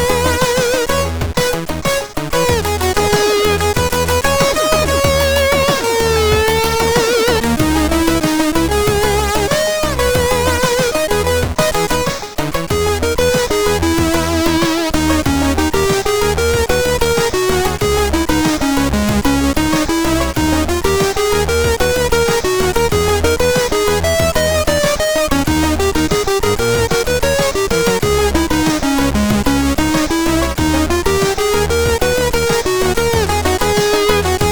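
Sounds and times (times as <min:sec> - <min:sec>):
CSG8580R5 SID chip music: 0:00.0 - 0:34.5.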